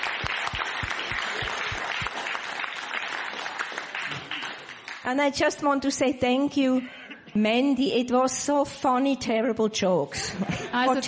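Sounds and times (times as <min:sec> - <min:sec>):
crowd applause: 0:00.0 - 0:05.1
speech: 0:05.0 - 0:11.0.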